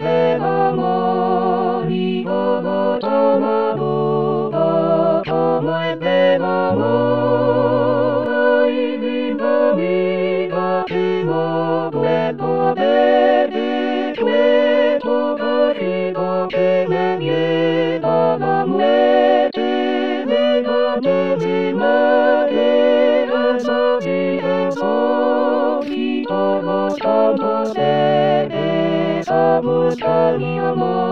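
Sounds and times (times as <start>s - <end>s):
full choir singing: 0.0s - 31.1s.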